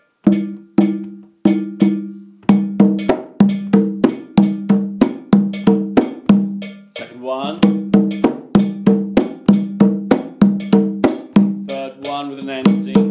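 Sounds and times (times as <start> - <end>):
metallic bell struck in a repeating rhythmic pattern: 0.3 - 2.0, 2.9 - 13.1.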